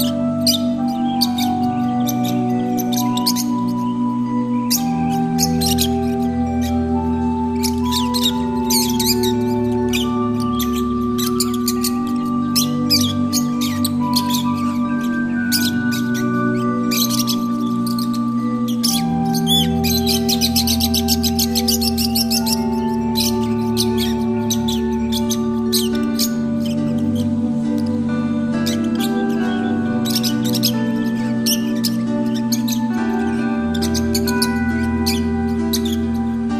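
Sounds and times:
lovebirds chirping: 0:00.0 - 0:36.5.

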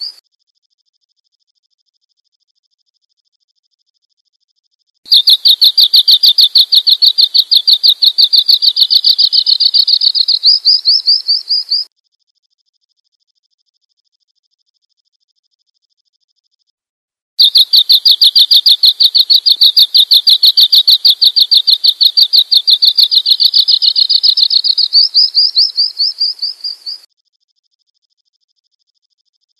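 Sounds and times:
bird chirping: 0:00.0 - 0:00.2, 0:05.1 - 0:11.9, 0:17.4 - 0:27.1.

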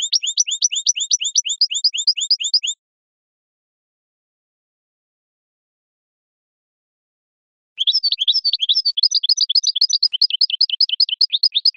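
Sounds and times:
European goldfinch song: 0:00.0 - 0:02.8, 0:07.8 - 0:11.7.

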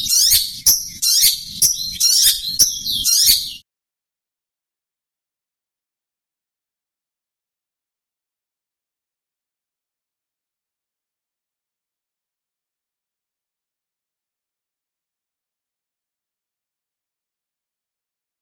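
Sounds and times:
long-tailed shrike song: 0:00.0 - 0:03.6.

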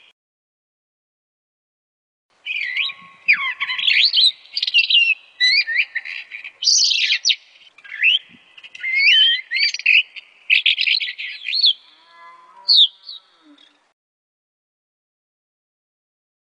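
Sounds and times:
starling singing: 0:02.4 - 0:13.9.

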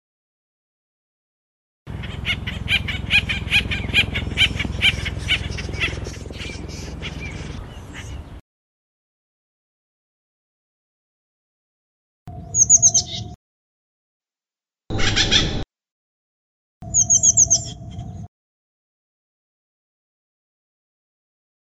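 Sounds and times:
Acorn woodpecker calling in harsh repeated notes: 0:01.9 - 0:08.4, 0:12.4 - 0:13.4, 0:14.9 - 0:15.6, 0:16.8 - 0:18.3.

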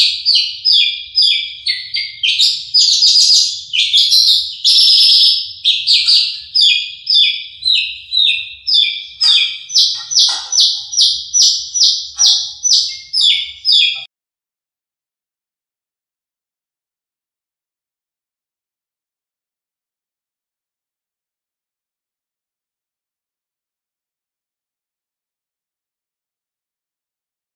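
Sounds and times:
Horsfield's bush lark singing: 0:00.0 - 0:14.1.

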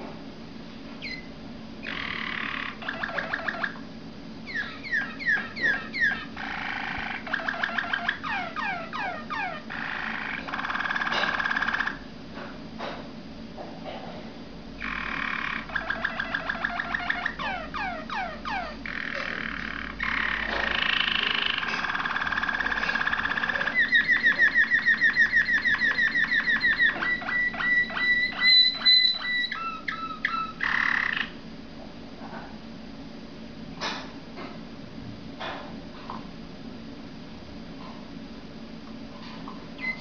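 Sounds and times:
Waterslager canary song: 0:01.0 - 0:12.1, 0:14.8 - 0:31.4, 0:39.4 - 0:39.9.

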